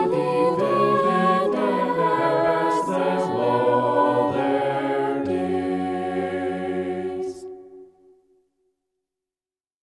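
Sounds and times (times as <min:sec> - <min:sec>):
polyphonic vocals in G minor: 0:00.0 - 0:07.6.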